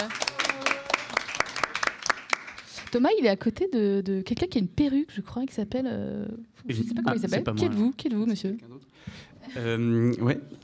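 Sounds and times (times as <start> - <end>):
small crowd clapping at an evening event with masked and costumed guests: 0.0 - 3.0
speech: 2.9 - 10.6.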